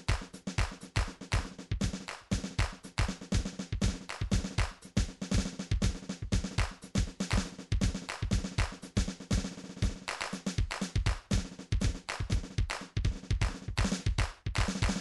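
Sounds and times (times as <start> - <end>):
MIDI drums and percussion: 0.0 - 14.9.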